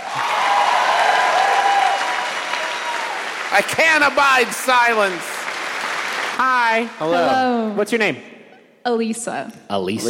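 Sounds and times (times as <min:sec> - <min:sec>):
audience applause: 0:00.0 - 0:07.3
speech: 0:03.5 - 0:05.3, 0:06.4 - 0:10.0.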